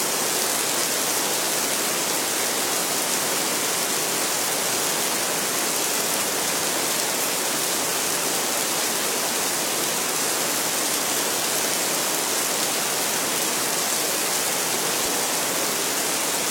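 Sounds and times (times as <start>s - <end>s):
steady rain: 0.0s - 16.5s.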